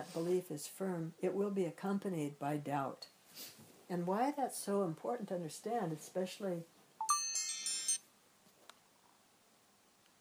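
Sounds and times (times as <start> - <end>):
speech: 0.0 - 6.8
phone timer alarm ringing: 7.0 - 8.0.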